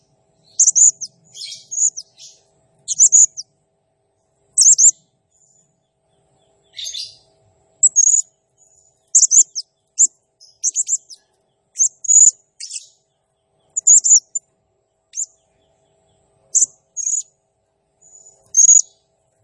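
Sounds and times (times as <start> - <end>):
blue-crowned hanging parrot chirping: 0.5 - 3.4, 4.6 - 4.9, 6.8 - 7.2, 7.8 - 8.2, 9.1 - 9.6, 10.4 - 11.2, 11.8 - 13.0, 13.7 - 14.4, 16.5 - 17.2, 18.1 - 19.0.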